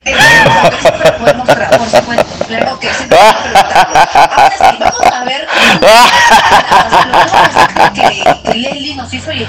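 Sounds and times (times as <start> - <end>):
person laughing evilly: 0.0 - 8.7.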